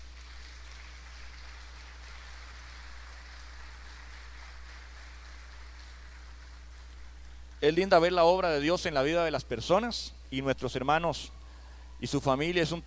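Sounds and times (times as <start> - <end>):
audience applauding: 0.0 - 7.8
speech: 7.6 - 11.4, 12.0 - 12.8.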